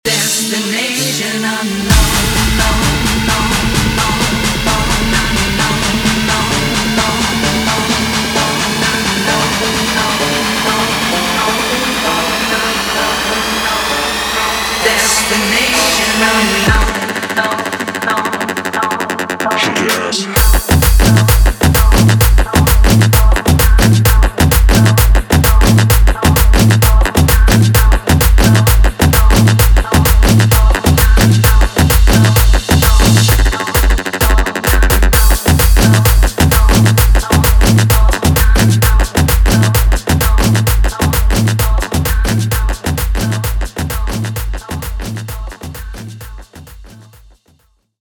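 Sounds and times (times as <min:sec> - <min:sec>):
mashup music: 0:00.1 - 0:46.7.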